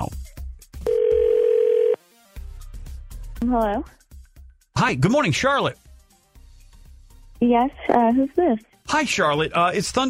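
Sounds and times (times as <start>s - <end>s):
outgoing call ringing tone: 0.8s - 2.0s
speech: 3.4s - 4.0s, 4.8s - 5.8s, 7.4s - 10.0s.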